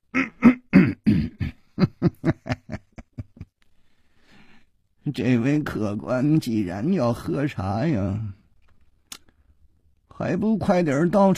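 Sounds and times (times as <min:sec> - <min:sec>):
narrator performing a soft staged cough of a shopkeeper: 0:00.2 - 0:01.6
laughter: 0:01.8 - 0:03.5
speech: 0:05.2 - 0:08.4, 0:10.2 - 0:11.3.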